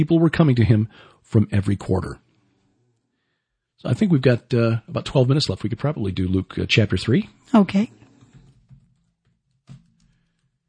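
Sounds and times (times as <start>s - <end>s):
speech: 0.0s - 2.2s, 3.8s - 8.0s
keystrokes on a computer keyboard during a Bible reading session: 8.2s - 10.5s.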